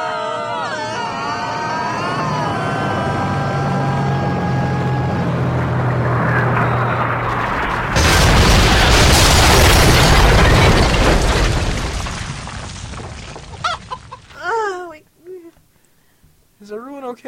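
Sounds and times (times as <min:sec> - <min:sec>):
brief voiced cry: 0:00.0 - 0:05.8
plane crash-landing effect: 0:05.4 - 0:13.6.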